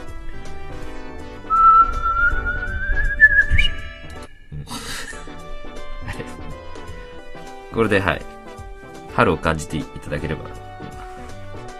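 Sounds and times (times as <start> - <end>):
whistled imitation of a lesser cuckoo call: 1.4 - 4.5
laughter: 4.6 - 5.3, 6.0 - 6.6
speech: 7.8 - 8.4, 9.2 - 10.6.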